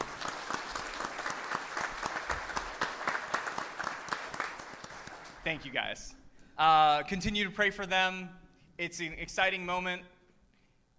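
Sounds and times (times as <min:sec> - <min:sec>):
church audience applauding: 0:00.0 - 0:05.7
speech: 0:05.5 - 0:10.1.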